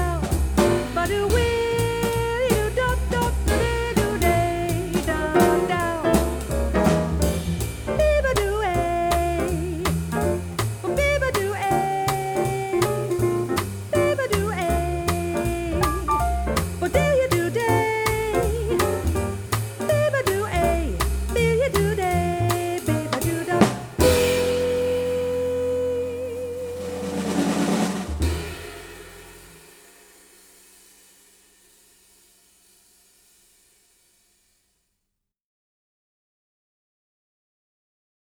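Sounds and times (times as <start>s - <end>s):
blues groove played on saxophone: 0.0s - 27.7s.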